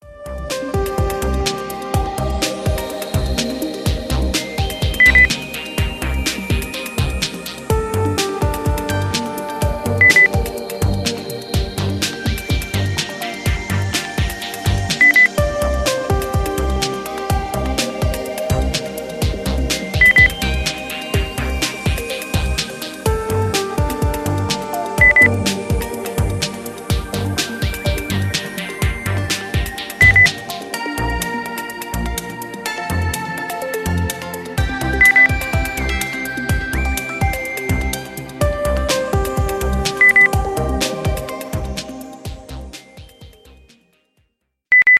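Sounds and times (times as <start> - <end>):
lounge music: 0.0 - 44.0.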